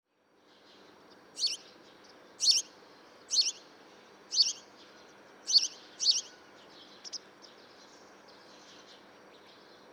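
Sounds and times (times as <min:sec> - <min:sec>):
House sparrow Passer domesticus chirps: 0:01.4 - 0:01.6, 0:02.4 - 0:02.7, 0:03.3 - 0:03.6, 0:04.3 - 0:04.6, 0:05.4 - 0:06.3, 0:06.9 - 0:07.2.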